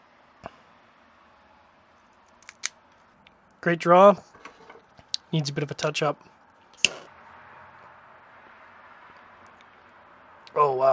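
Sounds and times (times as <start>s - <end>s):
V-cutter snipping the cap of a 46 ring gauge cigar: 2.4s - 2.8s
speech: 3.6s - 4.3s, 5.3s - 6.3s.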